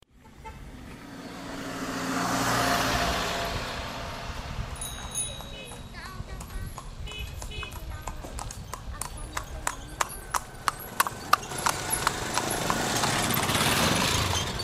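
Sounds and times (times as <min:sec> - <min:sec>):
car in Old Bagan Myanmar: 0:00.0 - 0:14.6
horse carriage in Old Bagan Myanmar: 0:04.4 - 0:14.6.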